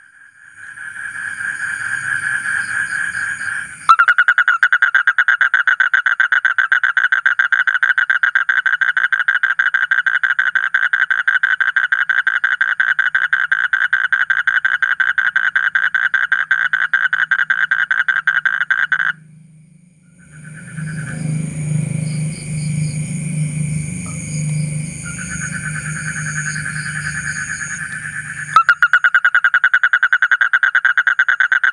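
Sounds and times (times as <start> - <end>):
Asian common toad trilling: 0.5 - 19.3, 20.0 - 23.3, 24.0 - 31.7
low hum: 18.6 - 29.0.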